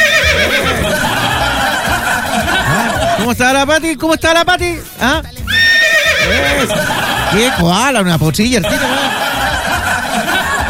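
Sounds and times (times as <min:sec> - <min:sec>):
horse neighing: 0:00.0 - 0:01.3, 0:05.5 - 0:07.4
laughter: 0:00.0 - 0:03.4, 0:05.9 - 0:10.6
speech: 0:03.3 - 0:05.4, 0:06.3 - 0:08.9.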